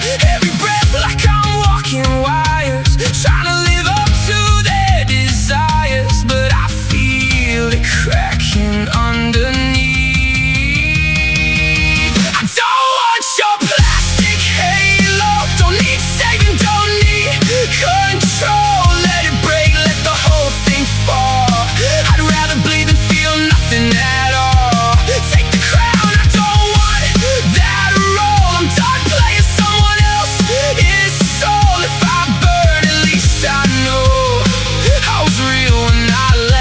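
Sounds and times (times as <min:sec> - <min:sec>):
rock song: 0:00.0 - 0:36.5.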